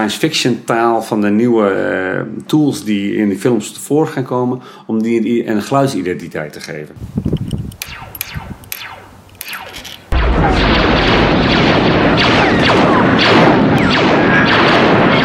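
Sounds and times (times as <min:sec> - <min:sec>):
speech: 0:00.0 - 0:07.4
lightsaber sound effect made from microphone feedback: 0:07.8 - 0:15.2.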